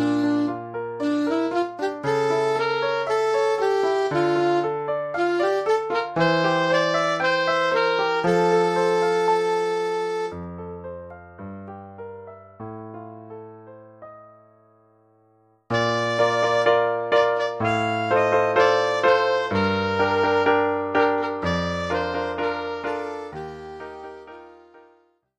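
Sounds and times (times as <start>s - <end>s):
saxophone: 0.0s - 10.6s, 15.7s - 25.0s.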